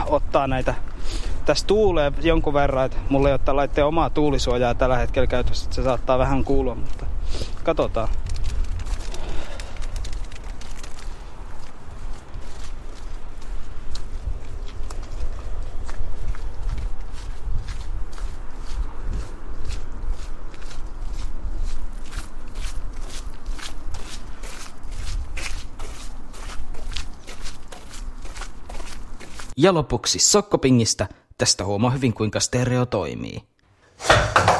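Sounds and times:
speech: 0:00.1 - 0:00.9, 0:01.5 - 0:07.1, 0:07.7 - 0:08.2, 0:29.6 - 0:34.4
footsteps walking on a quiet street: 0:06.5 - 0:29.6.

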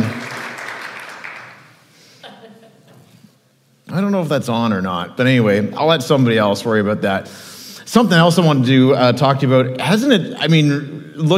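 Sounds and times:
church congregation clapping in welcome: 0:00.0 - 0:01.8
laughter: 0:02.2 - 0:03.2
speech: 0:04.0 - 0:11.3.

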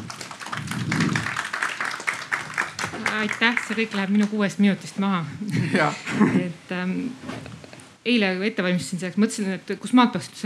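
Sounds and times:
audience applause: 0:00.0 - 0:04.4
speech: 0:03.2 - 0:07.3, 0:08.0 - 0:10.4.

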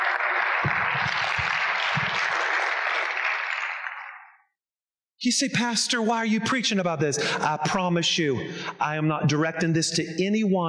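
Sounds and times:
hand clapping: 0:00.0 - 0:04.3
speech: 0:05.2 - 0:10.6.

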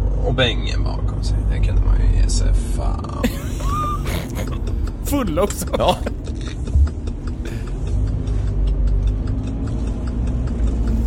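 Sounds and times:
running car engine rumble: 0:00.0 - 0:11.0
speech: 0:00.3 - 0:06.2
car turn signal ticking: 0:01.7 - 0:11.0
laughter: 0:03.2 - 0:06.6.

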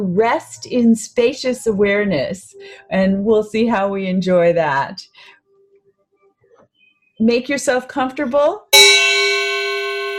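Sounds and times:
speech: 0:00.0 - 0:05.4, 0:07.2 - 0:08.6
meditation chime ringing: 0:08.8 - 0:10.1.

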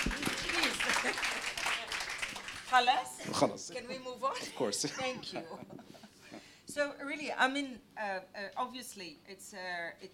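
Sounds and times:
crowd audience clapping: 0:00.0 - 0:03.1
speech: 0:02.7 - 0:05.8, 0:06.8 - 0:10.1.

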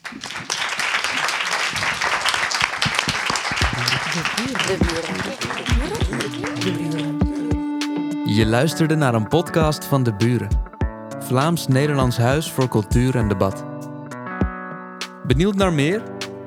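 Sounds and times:
audience applause: 0:00.0 - 0:07.7
laughter: 0:00.0 - 0:10.6
speech: 0:04.2 - 0:07.0, 0:08.4 - 0:10.6, 0:11.3 - 0:13.7, 0:15.3 - 0:16.1.

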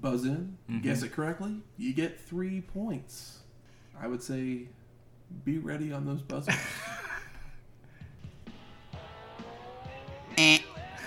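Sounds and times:
speech: 0:00.0 - 0:03.4, 0:04.0 - 0:07.0
wrestler's entrance theme song: 0:08.4 - 0:11.0.

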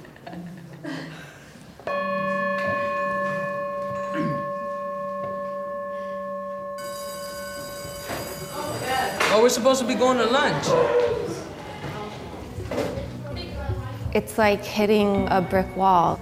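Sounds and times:
mindfulness bell ringing: 0:01.9 - 0:10.3
speech: 0:09.4 - 0:11.1, 0:14.2 - 0:16.1.

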